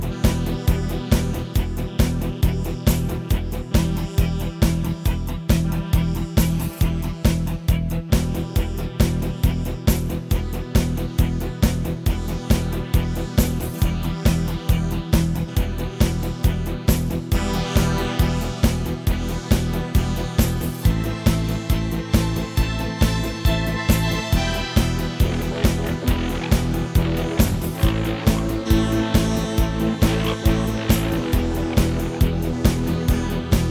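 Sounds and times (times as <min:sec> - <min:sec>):
alternative rock music: 0:00.0 - 0:33.6.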